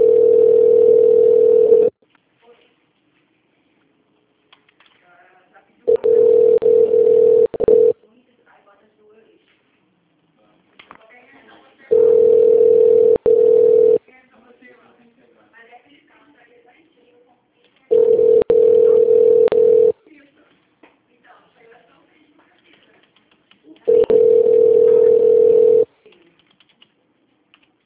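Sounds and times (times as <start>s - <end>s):
telephone ringback tone while a call connects to a company extension: 0.0s - 1.9s, 5.9s - 8.0s, 11.9s - 14.0s, 17.9s - 19.9s, 23.9s - 25.9s.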